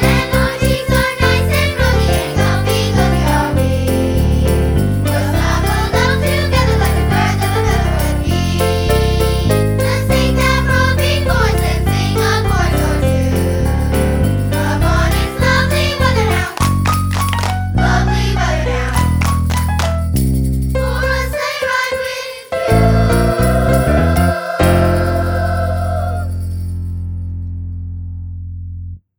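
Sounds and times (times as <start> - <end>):
choir singing: 0.0 - 16.8, 17.8 - 19.2, 20.8 - 26.6
bouncy sleigh ride music: 0.0 - 26.7.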